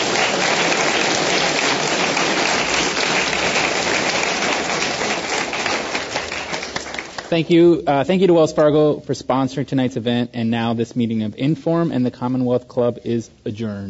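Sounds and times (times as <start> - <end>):
audience applause: 0.0 - 7.5
speech: 7.3 - 13.8.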